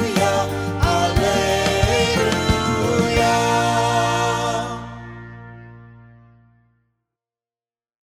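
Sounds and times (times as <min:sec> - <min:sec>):
liturgical singing: 0:00.0 - 0:05.6.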